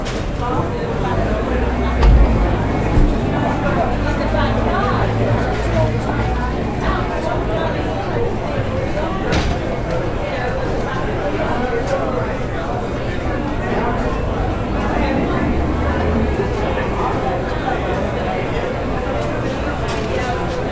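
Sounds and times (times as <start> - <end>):
many overlapping voices talking in a pub bar: 0.0 - 20.7
low rumbling thumps: 1.8 - 4.5
sharp knock: 2.0 - 3.2.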